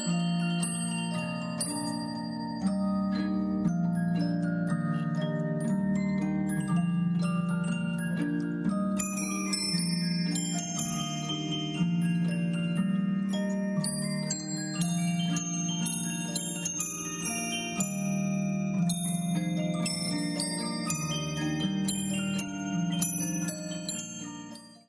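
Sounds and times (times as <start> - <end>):
music box glockenspiel: 0.0 - 24.8.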